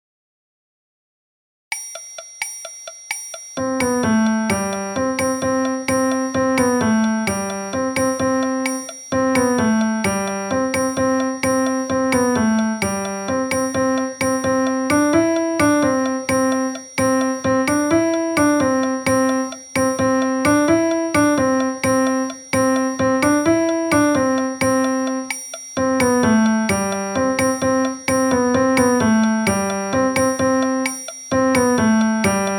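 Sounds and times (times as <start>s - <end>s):
piano music: 3.6s - 32.5s.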